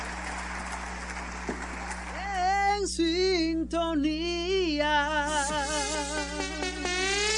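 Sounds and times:
applause: 0.0 - 2.5
speech: 3.0 - 7.2.

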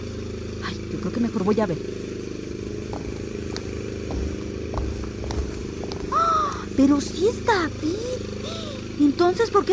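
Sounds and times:
lawnmower engine running: 0.0 - 9.7
speech: 0.6 - 2.1, 6.8 - 9.7
faint ticks and clattering knocks: 2.8 - 6.1.

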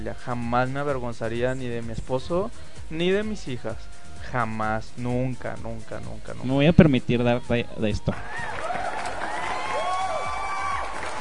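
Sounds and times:
speech: 0.0 - 8.6
applause: 8.2 - 11.2.

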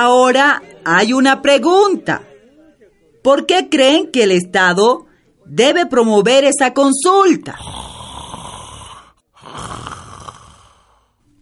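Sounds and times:
speech: 0.0 - 2.3, 3.2 - 7.8
soft snoring from people dozing off: 7.5 - 11.4.

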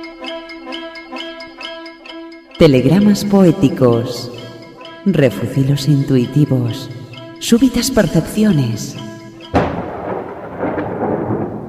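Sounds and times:
speech: 2.6 - 4.4, 5.0 - 9.1
thunder on a summer night: 9.5 - 11.6.

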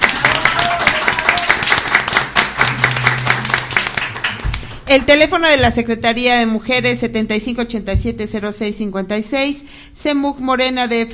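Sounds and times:
crowd applause: 0.0 - 4.9
speech: 4.9 - 11.1.

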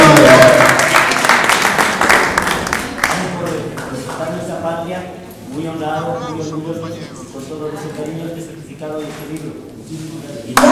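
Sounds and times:
audience applause: 0.0 - 4.4, 5.8 - 7.5
laughter: 5.6 - 8.3.

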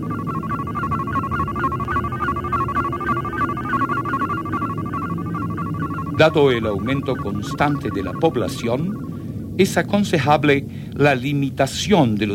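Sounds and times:
electronic beep tone before recording playback: 0.0 - 9.2
low rumbling hum: 0.0 - 9.5
speech: 6.2 - 9.0, 9.6 - 12.3.

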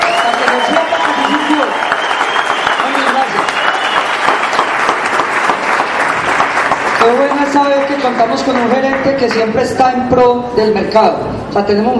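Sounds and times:
audience applause: 0.0 - 9.4
speech: 8.0 - 11.9.

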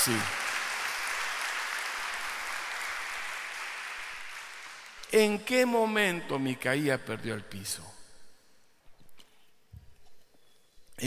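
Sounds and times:
speech: 0.0 - 0.4, 5.1 - 8.0
audience applauding: 0.0 - 5.1.

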